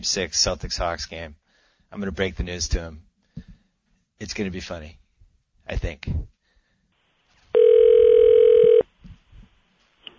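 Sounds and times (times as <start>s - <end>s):
speech: 0.0s - 3.5s, 4.2s - 5.0s, 5.7s - 6.4s
electronic ringback tone from phone call being placed: 7.6s - 8.8s.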